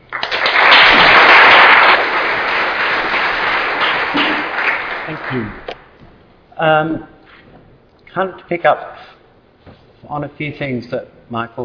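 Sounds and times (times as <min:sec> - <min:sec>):
audience applause welcoming a speaker at a talk: 0:00.0 - 0:05.8
speech: 0:05.3 - 0:05.7, 0:06.6 - 0:07.1, 0:08.2 - 0:09.2, 0:10.0 - 0:11.6.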